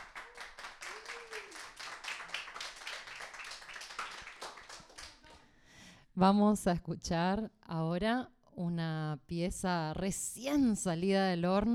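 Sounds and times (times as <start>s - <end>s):
applause: 0.0s - 5.5s
speech: 6.2s - 11.7s.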